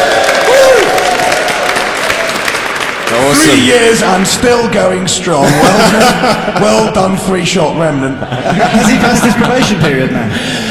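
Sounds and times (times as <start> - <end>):
audience applause: 0.0 - 3.8
speech: 3.4 - 10.6
laughter: 5.3 - 10.6.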